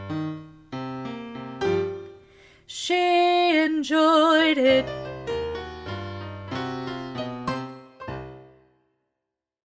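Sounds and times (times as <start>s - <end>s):
soprano singing: 2.7s - 5.4s.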